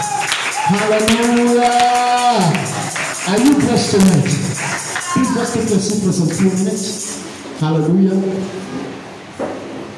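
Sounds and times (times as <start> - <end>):
audience clapping: 0.0 - 6.9
speech: 0.7 - 2.7, 3.3 - 4.5, 5.3 - 8.8.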